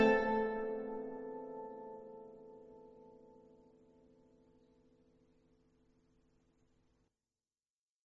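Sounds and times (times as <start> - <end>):
nyckelharpa playing a polska: 0.0 - 1.5.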